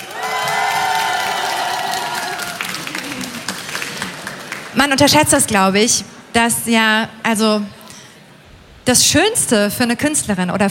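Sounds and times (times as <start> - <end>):
audience applause and cheering: 0.0 - 4.8
speech: 4.8 - 7.8, 8.8 - 10.6.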